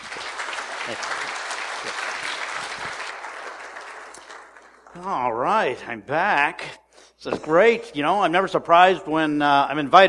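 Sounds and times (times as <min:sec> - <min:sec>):
audience applause welcoming a speaker: 0:00.0 - 0:05.2
speech: 0:00.9 - 0:01.2, 0:05.0 - 0:10.0.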